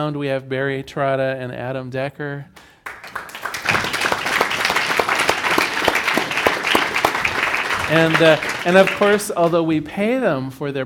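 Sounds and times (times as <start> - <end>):
speech: 0.0 - 2.7, 7.9 - 10.8
audience applause: 2.8 - 9.7.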